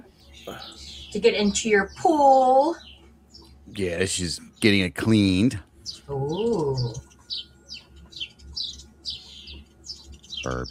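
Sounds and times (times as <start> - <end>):
birds chirping outside: 0.0 - 10.6
speech: 0.4 - 2.9, 3.7 - 7.5, 10.4 - 10.6
warbling coo-like bird call: 6.0 - 7.3.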